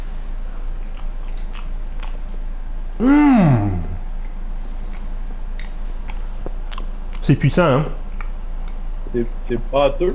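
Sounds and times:
biting into and chewing the cream filling of a biscuit: 0:00.4 - 0:02.5, 0:03.6 - 0:07.4, 0:08.0 - 0:08.9
speech: 0:03.0 - 0:03.6, 0:07.3 - 0:08.0, 0:09.1 - 0:10.1.

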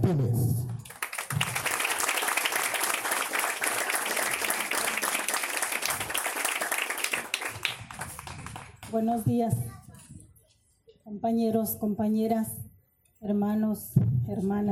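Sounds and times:
speech: 0:00.1 - 0:01.4, 0:08.9 - 0:09.8, 0:11.2 - 0:12.6, 0:13.3 - 0:14.6
large audience applause: 0:00.8 - 0:08.9.

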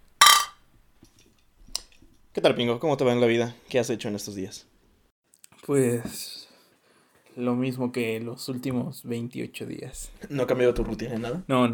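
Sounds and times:
glasses clinking in a toast: 0:00.2 - 0:00.5
speech: 0:02.4 - 0:04.7, 0:05.6 - 0:06.4, 0:07.4 - 0:11.7.

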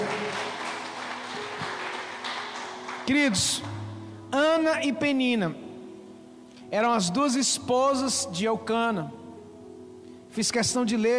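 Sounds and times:
crowd clapping in a large room: 0:00.0 - 0:03.8
speech: 0:03.1 - 0:05.6, 0:06.7 - 0:09.2, 0:10.4 - 0:11.1.

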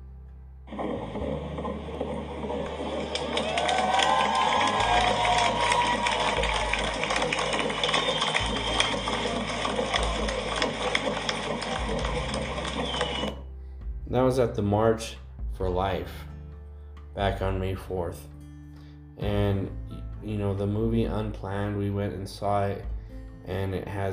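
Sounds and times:
speech: 0:00.7 - 0:02.0, 0:14.4 - 0:16.3, 0:17.2 - 0:18.3, 0:19.2 - 0:24.1
amplified fetal heartbeat: 0:00.7 - 0:13.4.

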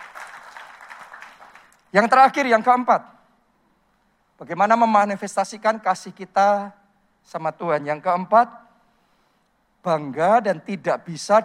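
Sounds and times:
audience applause: 0:00.0 - 0:01.8
speech: 0:01.9 - 0:03.2, 0:04.4 - 0:08.6, 0:09.8 - 0:11.4.

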